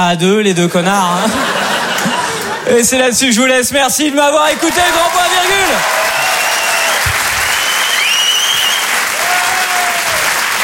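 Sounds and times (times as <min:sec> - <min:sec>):
speech: 0:00.0 - 0:01.6, 0:02.6 - 0:06.4
laughter: 0:01.0 - 0:02.8
audience applause after comedy act: 0:04.5 - 0:10.6.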